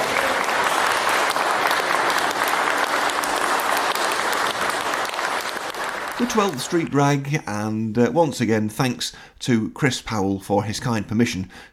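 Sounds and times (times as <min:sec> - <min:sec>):
audience applause: 0:00.0 - 0:07.2
speech: 0:06.2 - 0:11.7.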